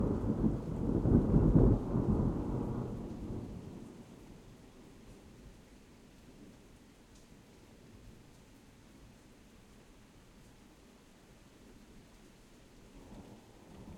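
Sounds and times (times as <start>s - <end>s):
distant thunder in a suburban thunderstorm: 0.0s - 4.0s
rain in a suburban thunderstorm: 0.0s - 13.9s.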